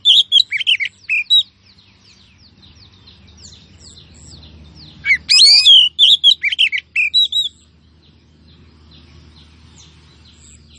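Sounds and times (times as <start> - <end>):
female Oriental magpie-robin calling: 0.0 - 10.7.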